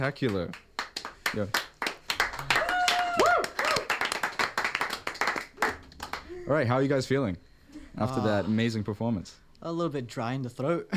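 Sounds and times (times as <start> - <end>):
speech: 0.0 - 0.7, 1.3 - 1.6, 6.5 - 10.9
audience clapping after a performance: 0.0 - 6.6
high whoops or whistles: 2.5 - 3.9.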